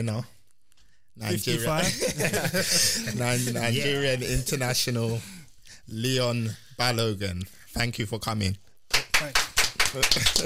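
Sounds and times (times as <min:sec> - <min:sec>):
speech: 0:00.0 - 0:00.4, 0:01.2 - 0:10.4
laughter: 0:01.4 - 0:04.6, 0:10.0 - 0:10.4
brisk clapping: 0:08.9 - 0:10.4.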